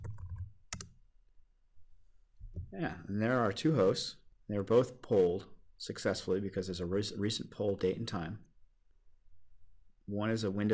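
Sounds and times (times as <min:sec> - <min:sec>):
typing a command into PowerShell on a computer keyboard: 0:00.0 - 0:01.0
speech: 0:02.7 - 0:08.5, 0:10.1 - 0:10.7.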